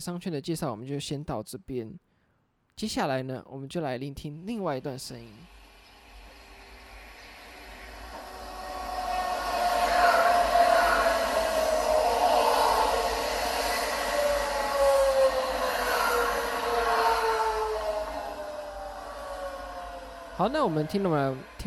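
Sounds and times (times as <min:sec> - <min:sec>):
speech: 0:00.0 - 0:02.1, 0:02.8 - 0:05.6, 0:20.4 - 0:21.6
EMU500 electric commuter train passing: 0:04.9 - 0:21.6.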